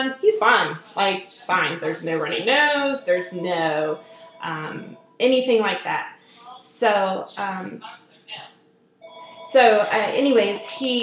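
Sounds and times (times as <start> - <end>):
speech: 0.0 - 8.5, 9.5 - 11.0
telephone electronic ringtone: 3.1 - 5.2, 9.0 - 11.0.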